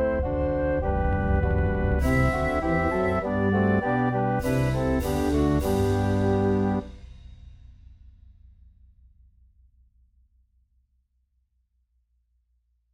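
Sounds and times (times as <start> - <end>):
flute melody: 0.0 - 6.9.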